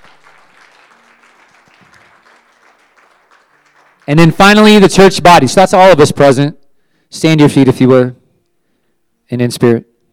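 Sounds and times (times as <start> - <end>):
audience clapping: 0.0 - 4.8
speech: 4.1 - 8.2, 9.3 - 9.9.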